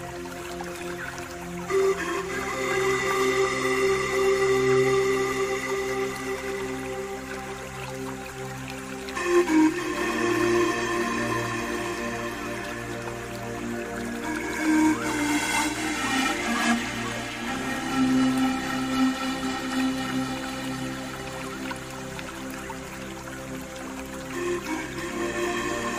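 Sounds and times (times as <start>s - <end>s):
low sustained tones: 0.0s - 25.9s
pan flute melody: 0.0s - 25.9s
running water: 0.0s - 25.9s.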